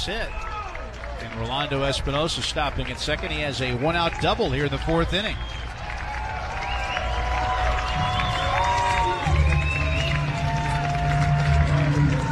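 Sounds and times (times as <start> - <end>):
speech: 0.0 - 0.5, 1.2 - 5.6
baseball stadium home crowd cheering a double: 0.0 - 12.3
shouts and whistles: 6.5 - 10.8.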